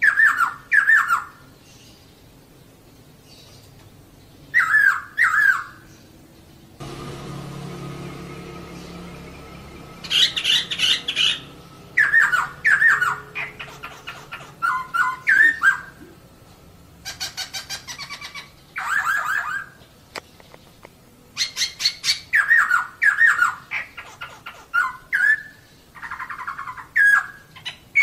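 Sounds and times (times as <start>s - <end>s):
bird song: 0.0s - 28.0s.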